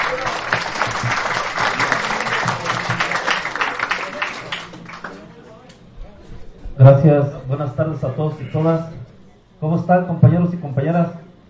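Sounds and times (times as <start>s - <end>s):
audience applause: 0.0s - 5.3s
speech: 6.8s - 9.0s, 9.6s - 11.2s.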